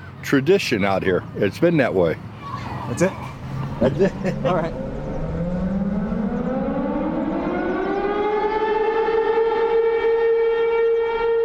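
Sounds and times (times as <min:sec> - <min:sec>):
speech: 0:00.3 - 0:02.3, 0:02.9 - 0:04.8
laughter: 0:02.8 - 0:04.8
civil defense siren sounding: 0:04.4 - 0:11.4.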